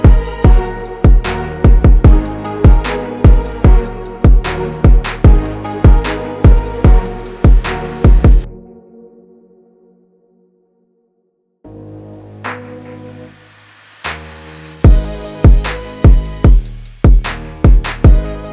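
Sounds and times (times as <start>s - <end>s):
urban beat in G sharp minor: 0.0s - 8.5s, 14.1s - 18.5s.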